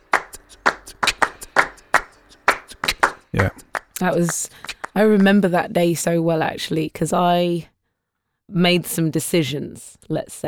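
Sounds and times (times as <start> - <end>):
hand claps in a music track: 0.0 - 5.4
speech: 3.4 - 7.7, 8.5 - 10.4.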